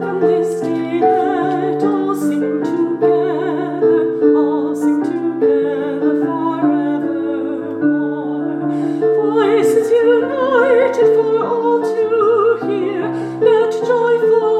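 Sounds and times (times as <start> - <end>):
alto singing: 0.0 - 14.5.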